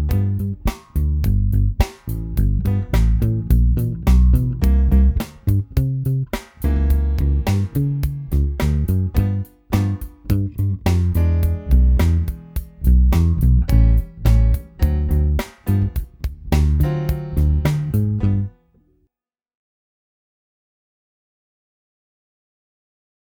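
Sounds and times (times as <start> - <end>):
R&B music: 0.0 - 18.6
bass: 0.0 - 18.9.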